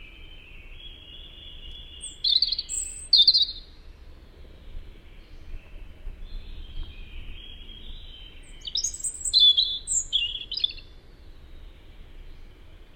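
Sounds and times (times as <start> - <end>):
European robin singing: 0.0 - 12.9.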